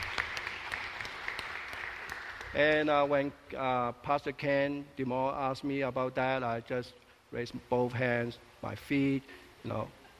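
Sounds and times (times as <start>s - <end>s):
audience applause: 0.0s - 2.7s
speech: 2.5s - 10.1s.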